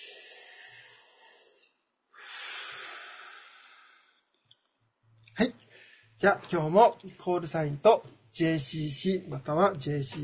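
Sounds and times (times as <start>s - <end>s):
deep breathing: 0.0s - 4.3s, 5.6s - 6.2s
speech: 5.4s - 5.6s, 6.2s - 10.2s.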